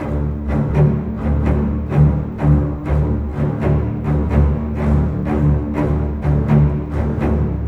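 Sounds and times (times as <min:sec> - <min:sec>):
cinematic orchestral strings: 0:00.0 - 0:07.6.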